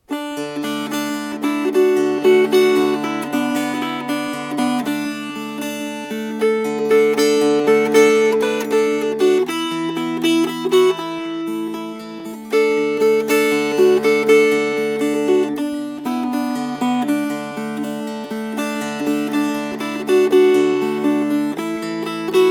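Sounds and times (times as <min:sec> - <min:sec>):
fingerpicked strings: 0:00.0 - 0:22.5.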